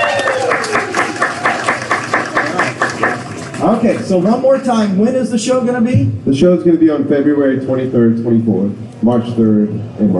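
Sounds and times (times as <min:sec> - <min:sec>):
audience applause: 0:00.0 - 0:04.2
speech: 0:03.8 - 0:10.1.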